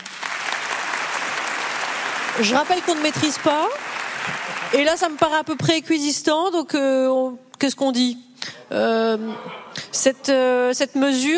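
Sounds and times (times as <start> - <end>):
crowd applause: 0.0 - 5.7
speech: 2.4 - 11.3.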